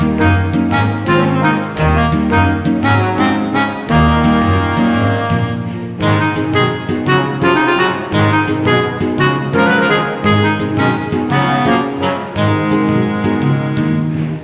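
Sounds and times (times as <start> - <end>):
lively playful music loop: 0.0 - 14.4.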